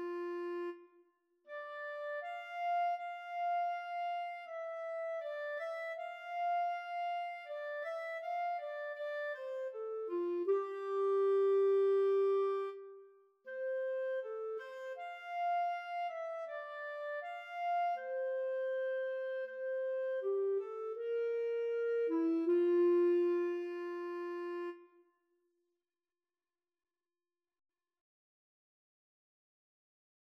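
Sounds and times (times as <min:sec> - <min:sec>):
clarinet and French horn duet playing a farewell song: 0:01.5 - 0:12.8, 0:13.6 - 0:24.8.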